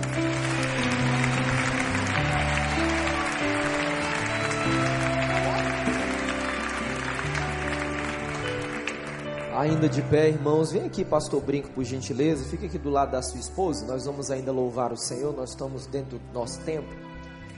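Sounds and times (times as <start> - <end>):
audience applause: 0.0 - 9.8
speech: 9.6 - 17.1.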